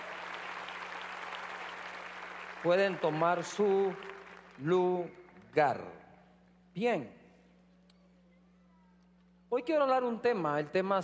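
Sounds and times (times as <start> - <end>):
church congregation clapping: 0.0 - 5.5
faint steady low hum: 0.0 - 11.0
speech: 2.6 - 6.0, 6.8 - 7.2, 9.5 - 11.0.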